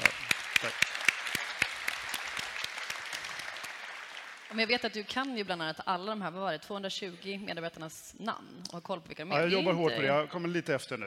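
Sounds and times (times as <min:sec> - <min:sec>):
applause: 0:00.0 - 0:05.4
speech: 0:00.6 - 0:00.8, 0:04.5 - 0:11.0.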